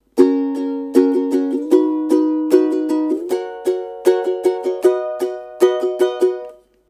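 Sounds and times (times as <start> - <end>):
ukulele strumming: 0.0 - 6.8.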